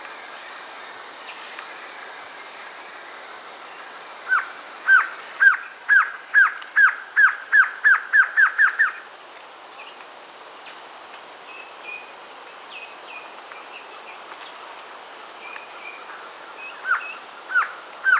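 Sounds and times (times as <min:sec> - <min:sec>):
Glossy antshrike Sakesphorus luctuosus luctuosus slurred calls: 0:04.3 - 0:09.0.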